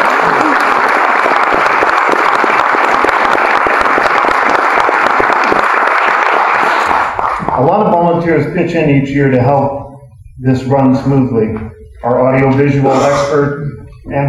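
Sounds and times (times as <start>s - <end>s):
audience applause: 0.0s - 7.7s
speech: 8.2s - 9.8s, 10.4s - 14.2s.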